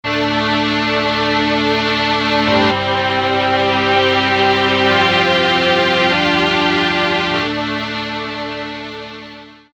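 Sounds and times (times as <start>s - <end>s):
strings: 0.1s - 9.6s.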